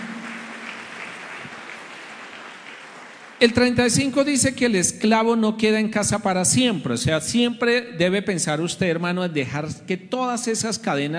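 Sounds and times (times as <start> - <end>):
audience applause: 0.0 - 3.5
speech: 3.4 - 11.1.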